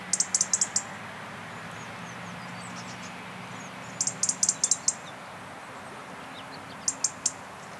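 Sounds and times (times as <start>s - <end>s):
European robin singing: 0.1s - 0.9s, 1.6s - 5.3s, 6.2s - 7.7s.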